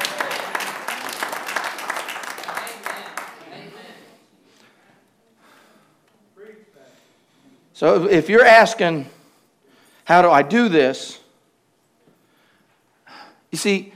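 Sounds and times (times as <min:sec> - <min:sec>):
audience applause: 0:00.0 - 0:03.9
speech: 0:07.8 - 0:09.2, 0:10.1 - 0:11.2, 0:13.5 - 0:13.9.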